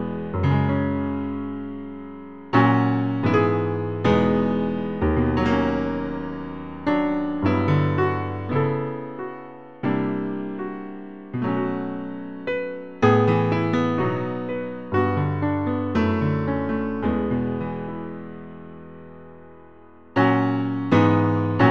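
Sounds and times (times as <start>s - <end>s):
piano: 0.0s - 21.6s.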